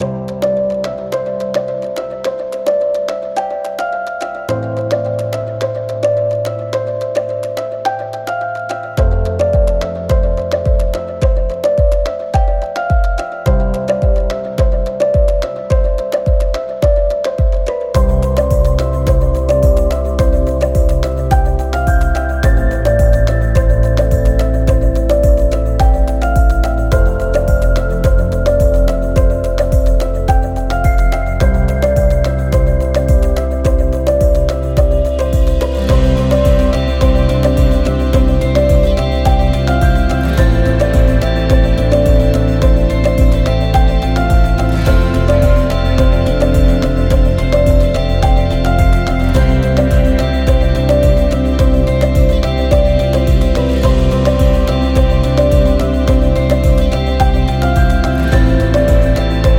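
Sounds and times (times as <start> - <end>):
easy corporate music: 0.0 - 59.5.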